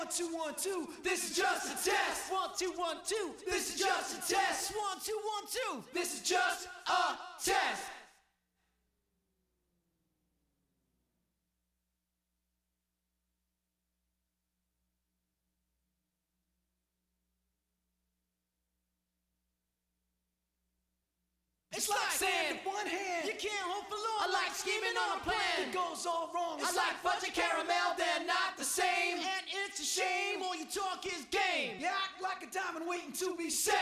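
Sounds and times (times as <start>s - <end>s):
a cappella singing: 0.0s - 8.1s, 21.8s - 31.8s, 32.9s - 33.8s.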